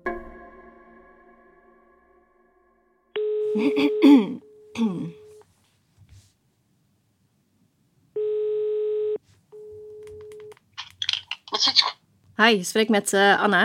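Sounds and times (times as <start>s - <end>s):
telephone ringback tones while an outgoing call connects: 3.2s - 5.4s, 8.2s - 10.4s
speech: 3.6s - 5.2s, 12.4s - 13.6s
brief clicks and rustles: 10.0s - 11.9s.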